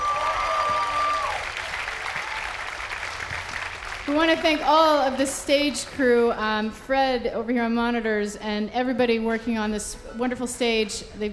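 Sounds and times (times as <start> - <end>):
festival audience applauding: 0.0 - 4.4
speech: 4.1 - 11.3.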